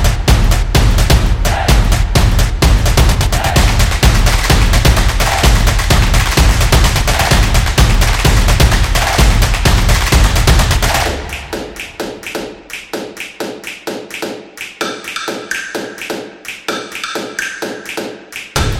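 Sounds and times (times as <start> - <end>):
drums: 0.0 - 11.8, 18.6 - 18.7.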